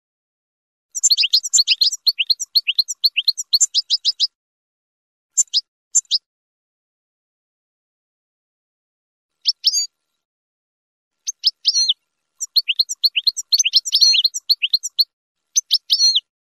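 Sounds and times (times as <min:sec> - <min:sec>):
finch song: 0:00.9 - 0:04.4, 0:05.3 - 0:06.3, 0:09.3 - 0:10.2, 0:11.1 - 0:16.3.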